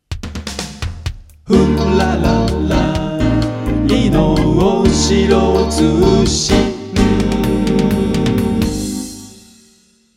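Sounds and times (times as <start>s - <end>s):
news jingle: 1.5s - 9.4s.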